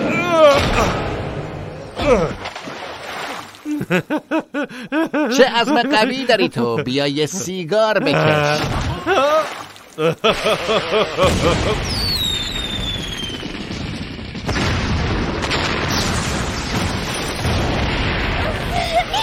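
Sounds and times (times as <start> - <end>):
speech: 0.8 - 1.0, 2.1 - 2.5, 3.9 - 12.0
laughter: 3.6 - 11.9, 18.6 - 19.2
fireworks bursting and crackling: 9.7 - 19.2
descending firework whistle: 11.9 - 13.4.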